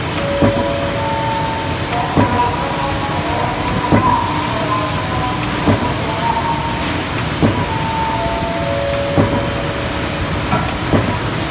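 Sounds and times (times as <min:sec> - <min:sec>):
anomaly sound: 0:00.2 - 0:11.4.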